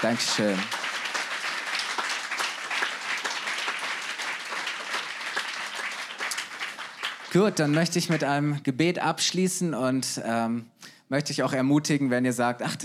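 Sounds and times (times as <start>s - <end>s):
speech: 0.0s - 0.8s, 7.3s - 12.8s
audience applause: 0.0s - 8.3s.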